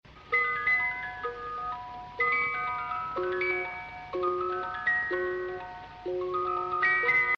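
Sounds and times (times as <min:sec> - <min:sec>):
old music box: 0:00.1 - 0:07.3.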